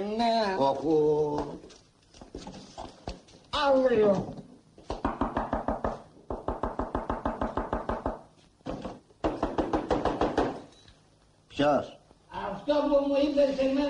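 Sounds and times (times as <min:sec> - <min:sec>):
speech: 0:00.2 - 0:01.8, 0:03.6 - 0:04.4, 0:11.6 - 0:12.0, 0:12.7 - 0:13.8
rapid rhythmic knocking on a door: 0:05.0 - 0:10.6.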